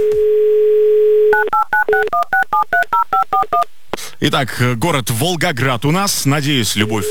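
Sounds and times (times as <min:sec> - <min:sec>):
telephone ringing tones: 0:00.0 - 0:03.6, 0:06.8 - 0:07.0
speech: 0:04.2 - 0:07.0.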